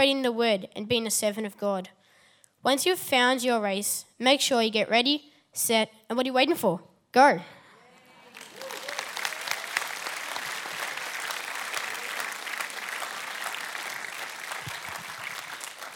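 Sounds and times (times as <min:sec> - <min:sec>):
speech: 0:00.0 - 0:02.0, 0:02.6 - 0:07.6
audience applause: 0:08.1 - 0:15.9.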